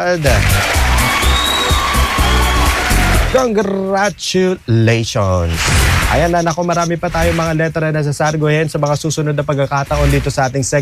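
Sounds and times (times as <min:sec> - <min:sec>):
speech: 0:00.0 - 0:00.8, 0:03.3 - 0:10.7
applause: 0:00.2 - 0:03.4
cheering: 0:00.2 - 0:03.4.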